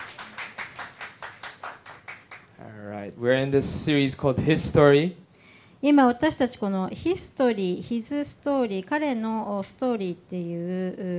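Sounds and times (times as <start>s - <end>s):
audience clapping for a media team: 0.0s - 2.6s
speech: 2.6s - 5.2s, 5.8s - 11.1s.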